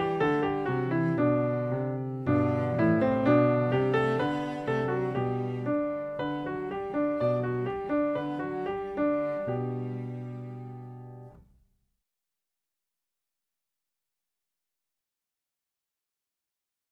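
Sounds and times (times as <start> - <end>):
cello: 0.0 - 11.5
piano: 0.0 - 11.7.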